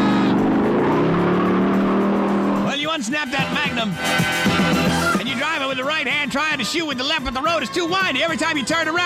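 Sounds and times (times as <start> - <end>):
car engine roaring at high speed in high-speed pursuit: 0.0 - 5.0
speech: 3.1 - 4.4, 5.3 - 9.0.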